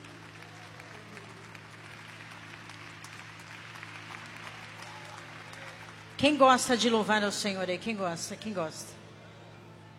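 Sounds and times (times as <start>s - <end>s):
audience applause: 0.0s - 6.4s
speech: 6.2s - 9.0s.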